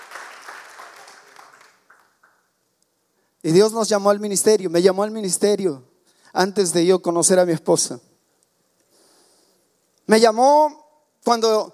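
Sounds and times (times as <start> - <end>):
audience applause: 0.0 - 2.4
speech: 3.4 - 8.1, 10.1 - 11.7.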